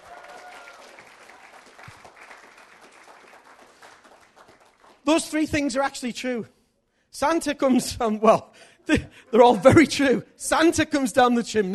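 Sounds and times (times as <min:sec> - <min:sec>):
audience applause: 0:00.0 - 0:05.0
speech: 0:05.1 - 0:06.6, 0:07.2 - 0:11.7.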